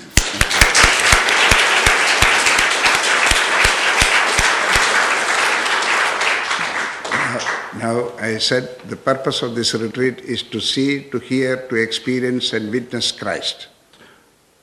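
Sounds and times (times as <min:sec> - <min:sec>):
audience applause at a retreat: 0:00.0 - 0:07.8
speech: 0:07.8 - 0:13.7.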